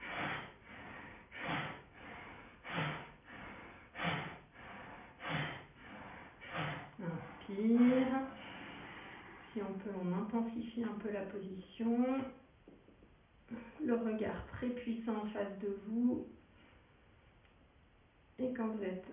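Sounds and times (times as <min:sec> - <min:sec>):
rapid forceful bhastrika breaths during a yoga posture: 0:00.0 - 0:10.0
speech: 0:07.5 - 0:08.3, 0:09.7 - 0:12.4, 0:13.9 - 0:16.4, 0:18.4 - 0:19.1.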